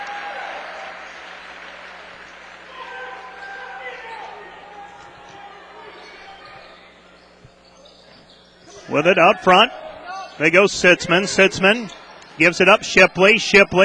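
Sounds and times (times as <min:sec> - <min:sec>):
basketball crowd applause and cheering: 0:00.0 - 0:05.8
speech: 0:08.9 - 0:09.8, 0:10.4 - 0:13.8.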